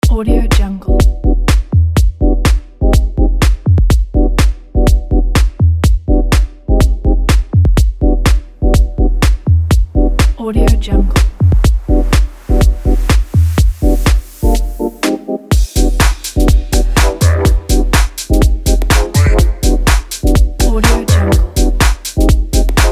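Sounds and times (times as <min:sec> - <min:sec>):
minimal fashion music: 0:00.0 - 0:22.8.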